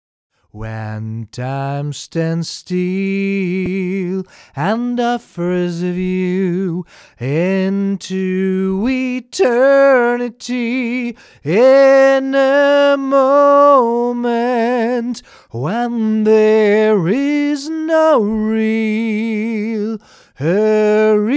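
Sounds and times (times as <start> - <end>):
person singing: 0.6 - 21.3.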